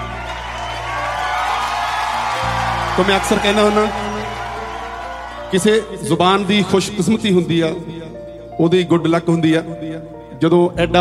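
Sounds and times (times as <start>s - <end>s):
crowd cheering and whooping at a literary event: 0.0s - 7.0s
speech: 3.0s - 4.1s, 5.5s - 8.0s, 8.6s - 10.9s.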